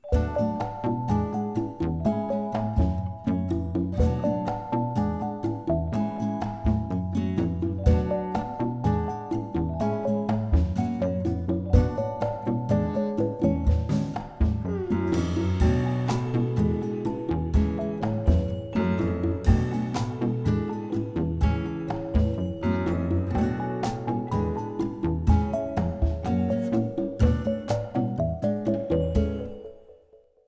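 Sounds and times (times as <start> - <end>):
social hub low ambient tone: 0.0 - 30.1.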